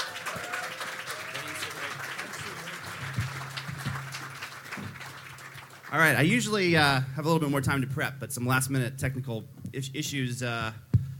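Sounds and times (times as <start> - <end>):
audience applause welcoming a speaker: 0.0 - 6.4
speech: 5.9 - 10.9.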